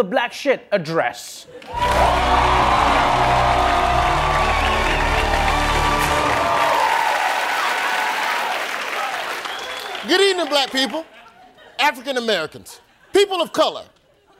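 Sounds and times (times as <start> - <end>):
speech: 0.0 - 3.0, 10.0 - 11.2, 11.8 - 13.9
studio audience clapping and cheering: 1.6 - 11.1.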